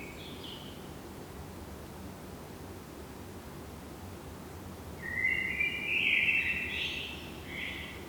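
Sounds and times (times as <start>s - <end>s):
Common blackbird Turdus merula singing: 5.1s - 7.9s.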